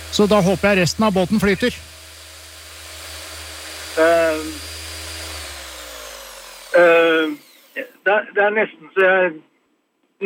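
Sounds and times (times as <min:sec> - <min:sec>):
circular saw cutting: 0:00.0 - 0:08.0
speech: 0:00.1 - 0:01.9, 0:04.0 - 0:04.7, 0:06.8 - 0:09.5.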